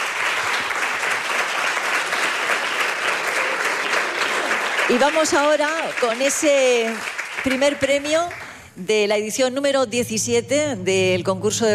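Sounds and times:
audience applause: 0:00.0 - 0:08.6
speech: 0:04.9 - 0:11.7.

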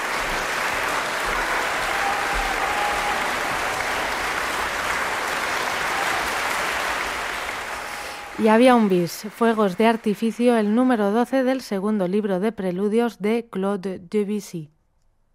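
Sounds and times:
concert audience applause after piano performance: 0:00.0 - 0:10.8
speech: 0:08.4 - 0:14.7.

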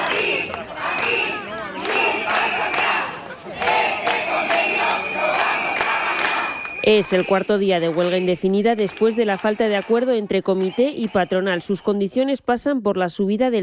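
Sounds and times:
protest crowd chanting a slogan in unison: 0:00.0 - 0:11.8
shrill whistle: 0:04.5 - 0:07.5
speech: 0:06.9 - 0:13.6.

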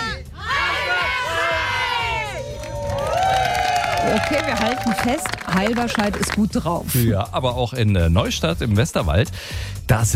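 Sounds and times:
crowd cheering and shouting for fire brigade: 0:00.0 - 0:06.2
speech: 0:04.1 - 0:10.1.

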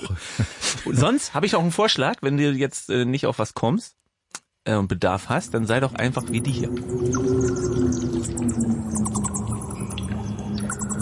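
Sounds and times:
speech: 0:00.9 - 0:04.0, 0:04.6 - 0:09.4
vampire bat sounds in a cave: 0:05.4 - 0:10.9.

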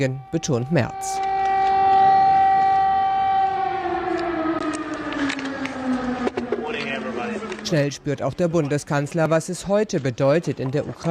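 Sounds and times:
speech: 0:00.0 - 0:01.3, 0:07.7 - 0:11.0
air raid sirens wailing: 0:00.0 - 0:08.6.

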